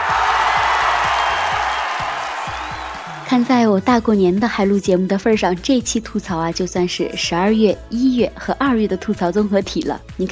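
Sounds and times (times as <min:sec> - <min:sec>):
applause sound effect: 0:00.0 - 0:03.6
cheering sound effect: 0:00.0 - 0:03.6
speech: 0:03.3 - 0:10.3.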